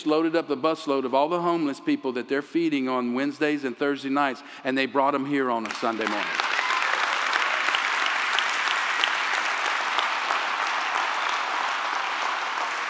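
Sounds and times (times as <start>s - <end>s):
speech: 0.0s - 6.5s
audience clapping: 5.6s - 12.8s.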